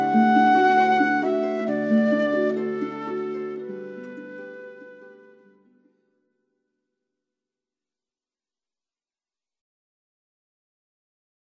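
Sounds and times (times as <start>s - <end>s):
flute: 0.0s - 6.0s
harp: 0.0s - 6.1s.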